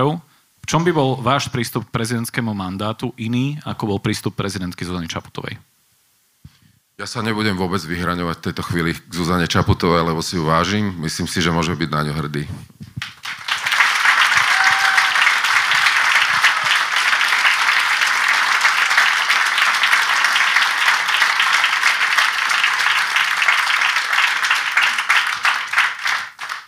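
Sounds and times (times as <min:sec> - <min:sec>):
speech: 0:00.0 - 0:05.7, 0:07.0 - 0:13.2
audience applause at a Slovak presidential debate: 0:13.0 - 0:26.6.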